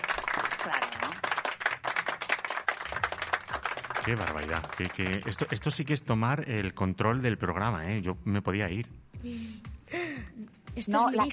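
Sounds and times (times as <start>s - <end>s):
applause sound effect: 0.0s - 5.7s
speech: 4.0s - 9.7s, 10.8s - 11.3s.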